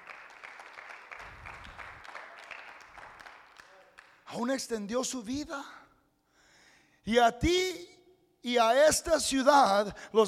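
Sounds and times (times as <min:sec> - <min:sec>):
audience clapping: 0:00.0 - 0:04.4
speech: 0:04.3 - 0:05.8, 0:07.1 - 0:10.2.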